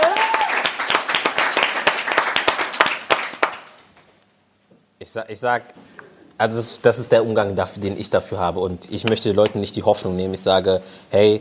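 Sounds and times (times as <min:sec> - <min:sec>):
audience applause: 0:00.0 - 0:03.7
speech: 0:05.2 - 0:11.4.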